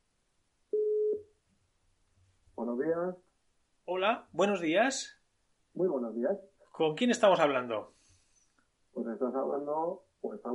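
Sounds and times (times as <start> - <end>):
telephone line ringing tone during call: 0.8 - 1.2
speech: 2.6 - 3.3, 3.9 - 5.2, 5.8 - 8.0, 9.0 - 10.5.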